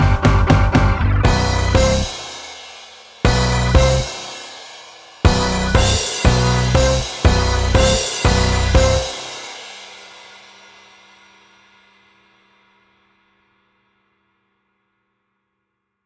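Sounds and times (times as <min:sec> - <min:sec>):
sneaky instrumental music: 0:00.0 - 0:02.7, 0:03.3 - 0:04.5, 0:05.3 - 0:09.7.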